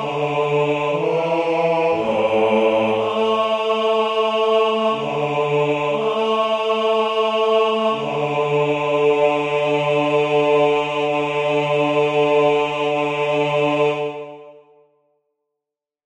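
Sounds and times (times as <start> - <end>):
bass voices of two choirs singing a verse: 0.0 - 14.6.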